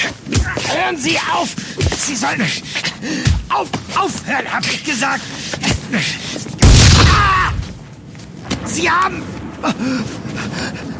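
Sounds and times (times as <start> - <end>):
speech: 0.8 - 6.5, 8.6 - 10.9
gunshot: 6.6 - 7.7.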